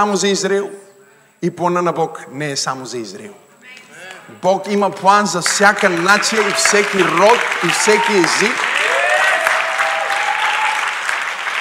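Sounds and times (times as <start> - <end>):
speech: 0.0 - 8.9
audience applause: 5.4 - 11.5
faint drawn-out vocal cheer or whistle: 6.3 - 11.0.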